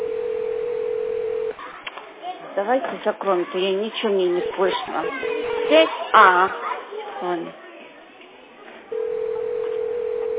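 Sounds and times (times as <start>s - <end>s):
telephone ringback tone while a call connects: 0.0s - 1.5s, 8.9s - 10.3s
speech: 2.6s - 7.6s.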